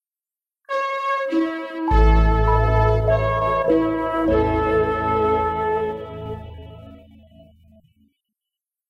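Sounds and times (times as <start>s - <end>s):
posthorn playing andante: 0.7s - 7.3s.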